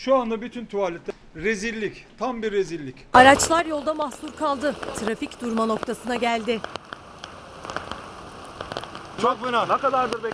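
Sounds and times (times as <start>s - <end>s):
speech: 0.0s - 6.8s, 9.2s - 10.3s
heavy rain pouring: 3.2s - 10.3s.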